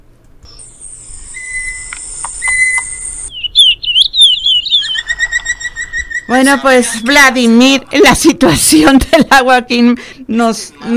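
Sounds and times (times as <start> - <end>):
birdsong: 0.5 - 7.5
speech: 6.3 - 10.9.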